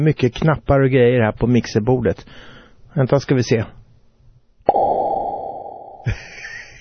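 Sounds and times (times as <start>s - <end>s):
speech: 0.0s - 3.8s, 6.0s - 6.4s
pop sound with reverb effect: 4.7s - 6.2s.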